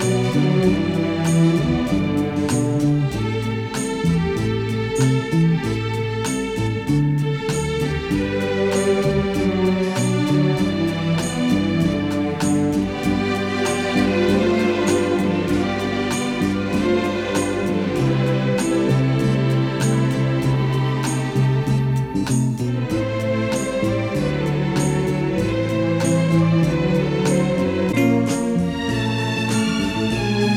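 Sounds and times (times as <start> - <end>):
guitars: 0.0 - 30.5
string orchestra: 0.0 - 30.5.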